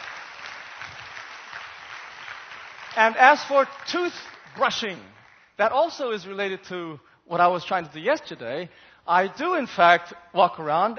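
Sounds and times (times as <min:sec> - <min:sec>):
audience applause thanking the cafeteria staff: 0:00.0 - 0:05.5
speech: 0:03.0 - 0:10.9.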